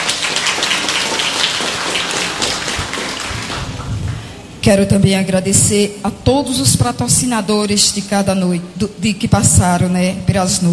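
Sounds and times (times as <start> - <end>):
applause: 0.0 - 4.2
speech: 4.7 - 10.7.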